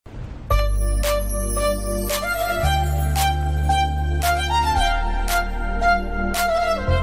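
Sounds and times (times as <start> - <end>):
Kannada instrumental ringtone: 0.5 - 6.9.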